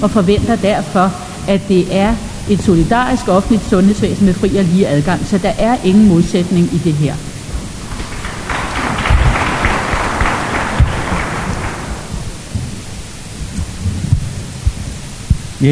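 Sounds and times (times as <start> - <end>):
speech: 0.0 - 7.3
low rumbling murmur: 0.0 - 15.6
audience applause: 7.6 - 13.1.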